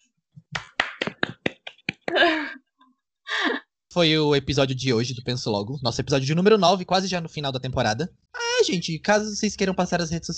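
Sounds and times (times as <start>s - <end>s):
hand clapping: 0.4s - 2.2s
speech: 4.0s - 10.3s.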